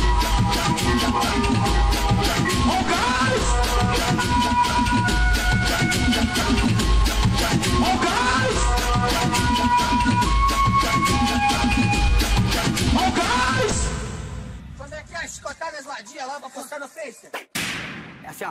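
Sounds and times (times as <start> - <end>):
funk music: 0.0 - 14.1.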